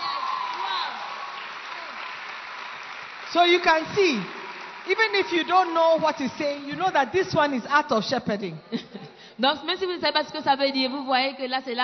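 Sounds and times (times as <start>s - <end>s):
scattered voices and cheers: 0.0s - 2.2s, 3.3s - 7.9s
crowd clapping: 0.0s - 7.8s
speech: 3.3s - 11.8s.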